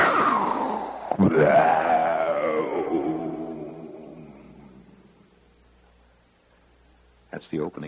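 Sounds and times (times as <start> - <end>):
voice imitating giant mushroom-cloud explosion: 0.0 - 4.9
speech: 1.2 - 1.9, 7.3 - 7.8.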